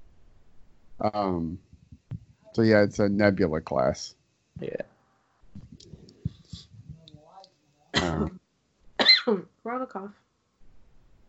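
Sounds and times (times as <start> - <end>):
speech: 1.0 - 1.7, 2.5 - 4.9, 9.3 - 10.2
cough: 7.9 - 8.4, 9.0 - 9.4.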